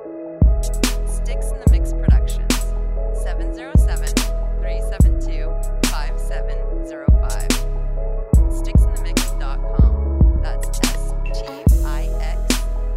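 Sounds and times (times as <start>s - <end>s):
trap beat: 0.4s - 6.3s, 7.1s - 7.7s, 8.4s - 12.9s.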